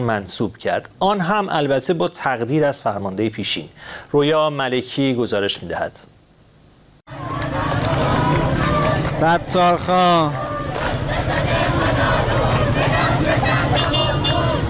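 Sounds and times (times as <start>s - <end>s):
speech: 0.0s - 6.2s, 9.1s - 10.5s
voices of supporters of Sistan and Baluchestan: 7.1s - 14.6s.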